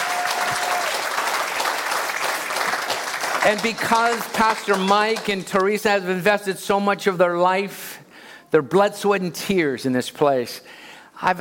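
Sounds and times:
audience applause: 0.0 - 5.8
speech: 3.4 - 7.8, 8.5 - 11.4.

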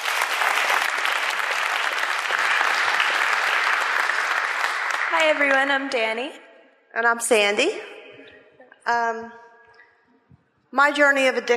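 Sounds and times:
audience applause: 0.0 - 5.8
speech: 5.1 - 7.9, 8.8 - 9.4, 10.7 - 11.5.

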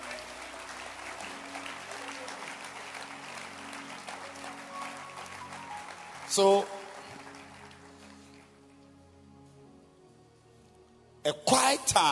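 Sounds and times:
audience clapping hands: 0.0 - 8.8
speech: 6.4 - 6.8.

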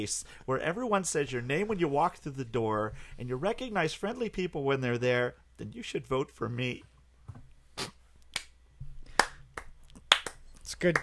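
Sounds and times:
speech: 0.0 - 7.9, 10.7 - 11.0
1980s-style slow clap: 8.3 - 11.0.

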